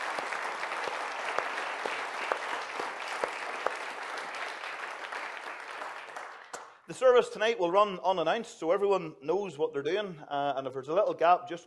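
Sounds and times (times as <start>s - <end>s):
audience applause: 0.0s - 6.8s
speech: 6.9s - 11.6s.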